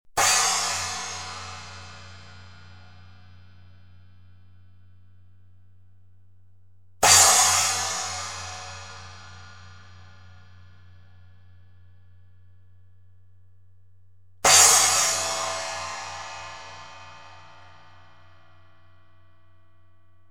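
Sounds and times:
cymbal: 0.2 - 4.8, 7.0 - 12.3, 14.4 - 19.4.

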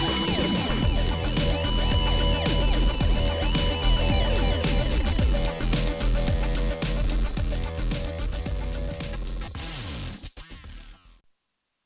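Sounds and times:
Moog Theremini square wave in major pentatonic: 0.0 - 8.9
backing track: 0.0 - 9.6.

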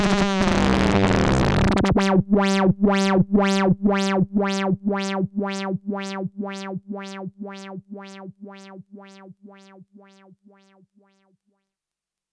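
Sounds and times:
FM synthesizer tone without and with resonance: 0.0 - 11.1.

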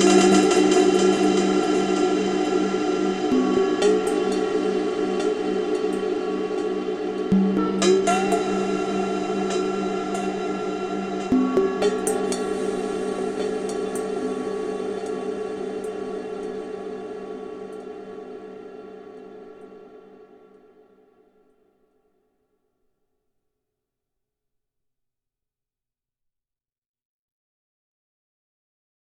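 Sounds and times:
Sequential Prophet X glitch bowls: 0.0 - 20.2.

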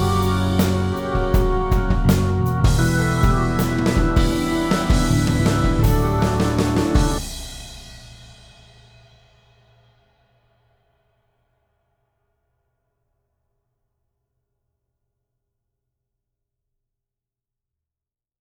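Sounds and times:
organ: 0.0 - 7.6
bass: 0.0 - 7.7
drums: 0.0 - 11.7.

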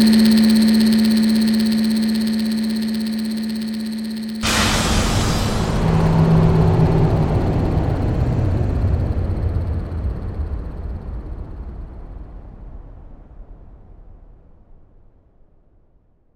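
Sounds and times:
atmospheric ambience: 0.0 - 11.3.

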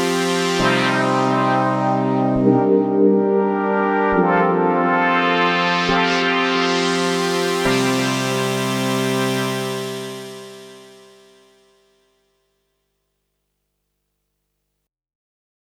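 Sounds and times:
noisy chords going from dry to wet: 0.0 - 11.6.

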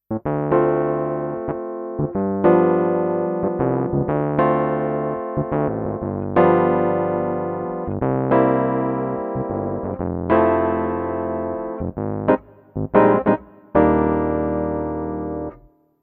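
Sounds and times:
Korg D1 electric piano: 0.1 - 15.7.

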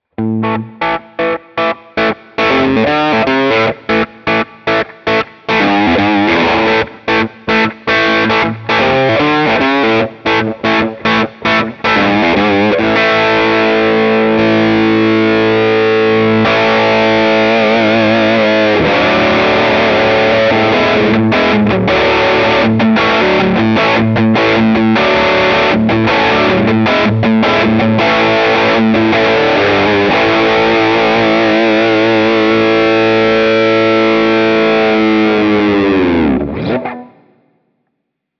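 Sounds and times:
drive tone through 1x12 Classic Ceramic and 2x12 Boutique Twin cabinets: 0.0 - 38.3.

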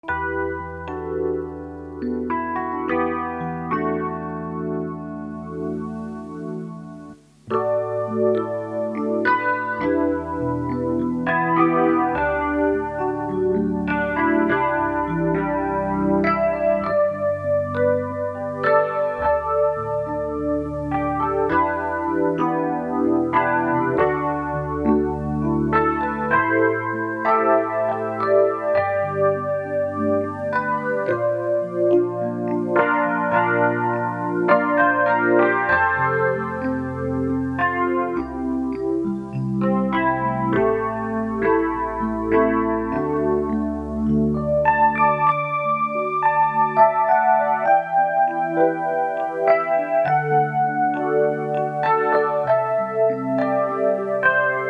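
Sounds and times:
electric piano through Eventide H3000 micropitchshift: 0.0 - 54.6.

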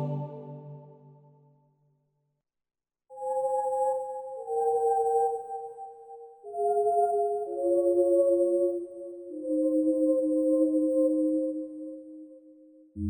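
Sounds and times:
Yamaha PSR SX700 SX900 keyboard pad sounds: 3.2 - 11.6.

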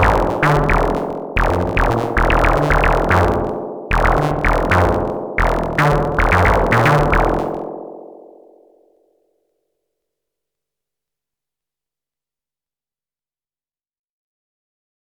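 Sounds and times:
FM synth percussion: 0.0 - 7.8.

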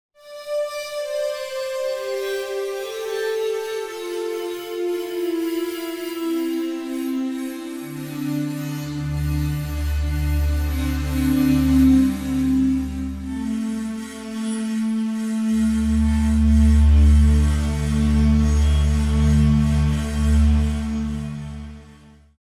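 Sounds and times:
bowed instrument: 0.5 - 22.3.

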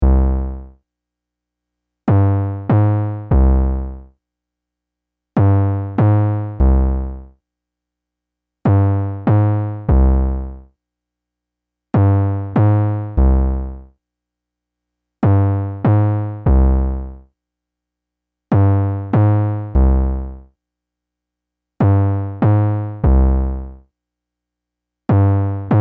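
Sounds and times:
TR808 drum machine kick bass: 0.0 - 0.6, 2.1 - 4.0, 5.4 - 7.2, 8.7 - 10.6, 12.0 - 13.7, 15.2 - 17.1, 18.5 - 20.4, 21.8 - 23.8, 25.1 - 25.7.

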